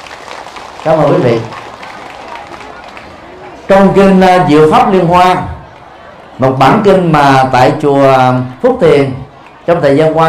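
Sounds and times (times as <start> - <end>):
audience applause: 0.0 - 4.2, 5.2 - 6.4
speech: 0.8 - 1.6, 3.7 - 5.5, 6.4 - 10.2.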